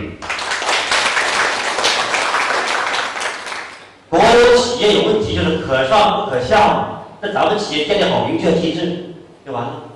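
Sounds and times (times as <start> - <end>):
crowd applause: 0.2 - 3.9
speech: 4.1 - 9.9.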